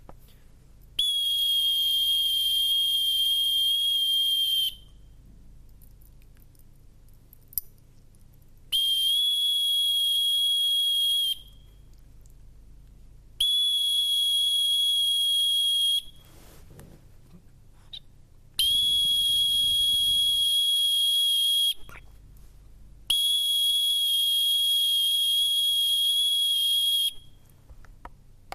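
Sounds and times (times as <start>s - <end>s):
whistle: 1.0s - 5.1s, 8.7s - 11.8s, 13.4s - 16.2s, 18.6s - 22.0s, 23.1s - 27.4s.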